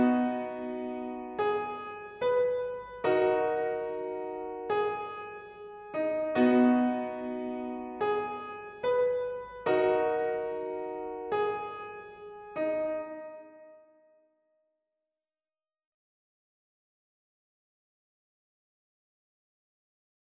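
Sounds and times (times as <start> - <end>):
piano: 0.0 - 14.2.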